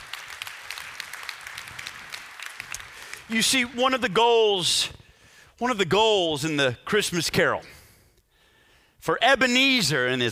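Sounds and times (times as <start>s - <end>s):
audience applause: 0.0s - 3.6s
speech: 3.3s - 5.0s, 5.6s - 7.8s, 9.0s - 10.3s.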